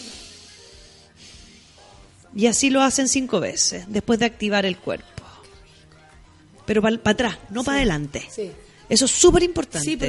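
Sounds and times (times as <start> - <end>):
nasal inhalation with the mouth closed during a breathing exercise: 0.0 - 2.2
speech: 2.3 - 5.2, 6.7 - 10.0.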